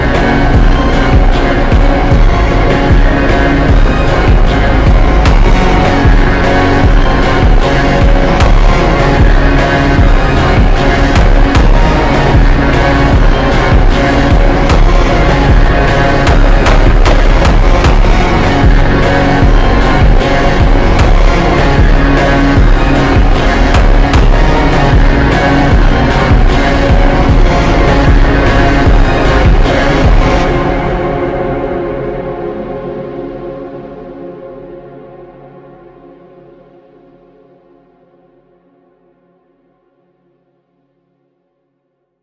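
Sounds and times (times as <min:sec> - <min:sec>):
super slowed funk with reverb: 0:00.0 - 0:33.2.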